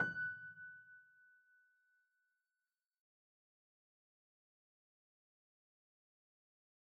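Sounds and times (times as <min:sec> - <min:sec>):
piano sampler: 0:00.0 - 0:01.3.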